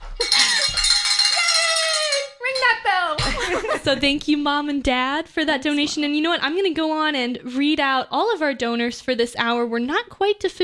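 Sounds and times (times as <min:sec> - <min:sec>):
hand bell ringing: 0:00.2 - 0:02.8
speech: 0:03.8 - 0:10.6.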